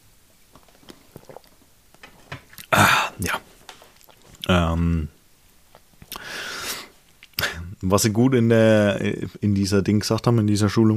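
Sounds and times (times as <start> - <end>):
person taking a drink, swallowing: 0.5 - 4.5
speech: 4.5 - 5.1, 7.9 - 10.9.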